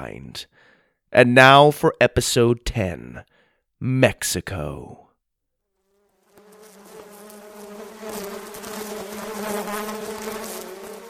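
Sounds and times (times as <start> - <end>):
speech: 0.0 - 5.0
bees buzzing around a beehive: 6.3 - 11.0.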